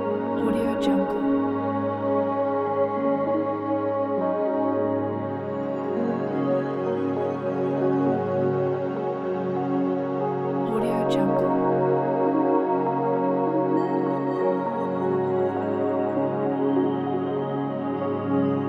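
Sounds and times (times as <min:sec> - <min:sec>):
ambient soundscape: 0:00.0 - 0:18.6.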